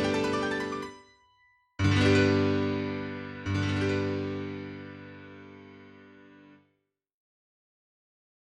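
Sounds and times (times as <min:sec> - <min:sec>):
prelude in G major: 0:00.0 - 0:06.0.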